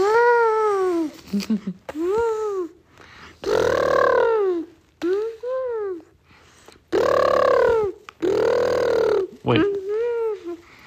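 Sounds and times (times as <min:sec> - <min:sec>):
child imitating elephant trumpeting and groaning: 0:00.0 - 0:01.2, 0:03.4 - 0:06.2, 0:06.9 - 0:10.6
speech: 0:01.4 - 0:02.2.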